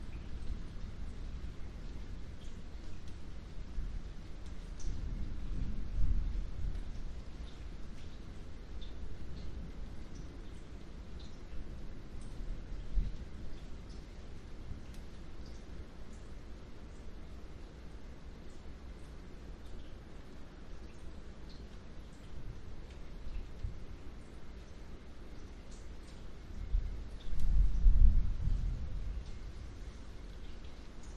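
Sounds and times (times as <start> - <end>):
wind in palm trees: 0.0 - 15.3, 25.9 - 31.1
light rain: 0.0 - 31.1
roof drips: 0.0 - 31.1.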